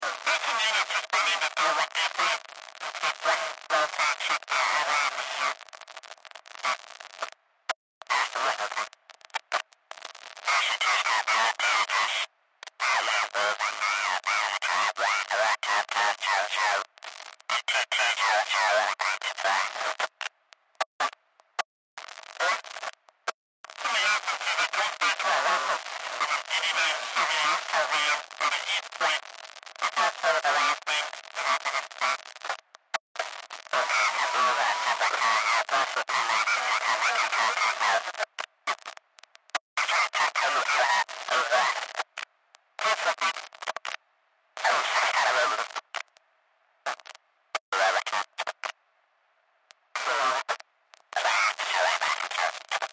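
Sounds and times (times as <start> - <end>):
science fiction scrambled radio signal: 0.0 - 7.4, 8.0 - 44.0, 44.6 - 46.2, 46.8 - 48.8, 49.7 - 52.9.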